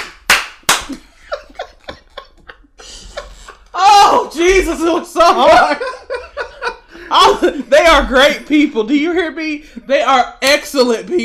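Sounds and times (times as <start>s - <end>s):
round of applause: 0.0s - 0.9s
laughter: 0.8s - 9.5s
speech: 0.9s - 1.1s, 4.4s - 5.9s, 7.1s - 11.2s.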